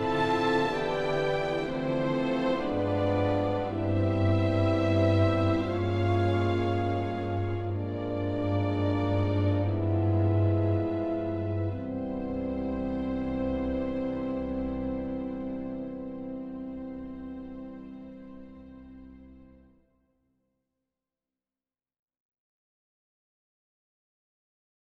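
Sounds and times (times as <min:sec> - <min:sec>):
French horns: 0:00.0 - 0:19.6
strings: 0:00.0 - 0:19.6.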